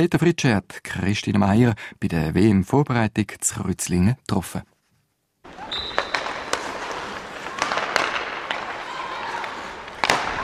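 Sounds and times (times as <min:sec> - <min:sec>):
speech: 0:00.0 - 0:04.7
puck against stick during ice hockey passing practice: 0:05.9 - 0:10.4.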